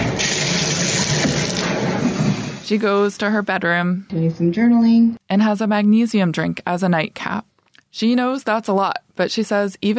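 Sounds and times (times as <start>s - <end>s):
hot shower water running over eucalyptus leaves: 0.0s - 2.7s
speech: 2.7s - 9.9s.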